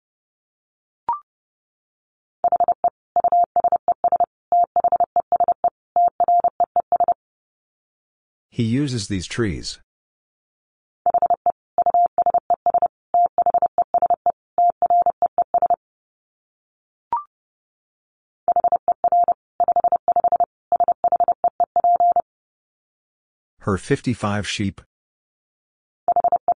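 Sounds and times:
Morse code tones at 30 wpm: 0:02.5 - 0:07.2, 0:11.1 - 0:15.8, 0:18.5 - 0:22.2, 0:26.1 - 0:26.5
speech: 0:08.6 - 0:09.9, 0:23.7 - 0:24.9.

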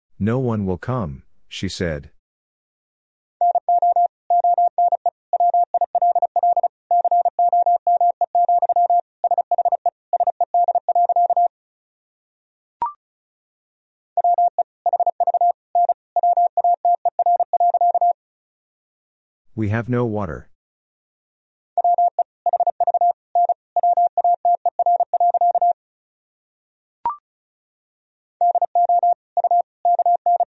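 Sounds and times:
speech: 0:00.2 - 0:02.2, 0:19.6 - 0:20.5
Morse code tones at 35 words per minute: 0:03.4 - 0:11.5, 0:14.2 - 0:18.2, 0:21.8 - 0:25.8, 0:28.4 - 0:30.4.

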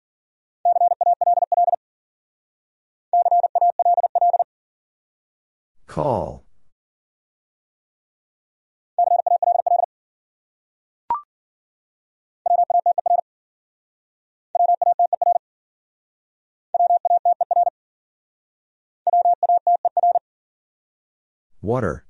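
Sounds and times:
Morse code tones at 40 words per minute: 0:00.7 - 0:01.8, 0:03.2 - 0:04.4, 0:09.0 - 0:09.9, 0:12.5 - 0:13.2, 0:14.6 - 0:15.4, 0:16.8 - 0:17.7, 0:19.1 - 0:20.2
speech: 0:06.0 - 0:06.4, 0:21.7 - 0:22.0.

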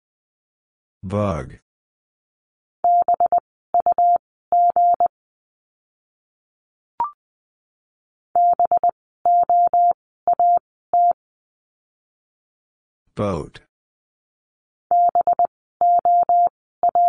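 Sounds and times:
speech: 0:01.0 - 0:01.6, 0:13.2 - 0:13.7
Morse code tones at 20 words per minute: 0:02.8 - 0:05.1, 0:08.4 - 0:11.2, 0:14.9 - 0:17.0.

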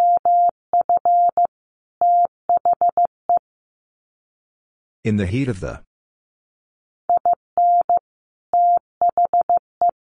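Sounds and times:
Morse code beeps at 15 wpm: 0:00.0 - 0:03.4, 0:07.1 - 0:08.0, 0:08.6 - 0:10.0
person speaking: 0:05.1 - 0:05.9.

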